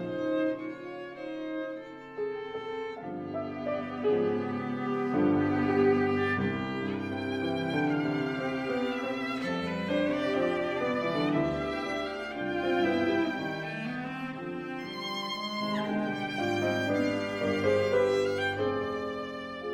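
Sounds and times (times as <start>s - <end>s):
cello in a piano trio: 0.0s - 19.7s
piano in a piano trio: 0.0s - 19.7s
violin in a piano trio: 0.0s - 19.7s.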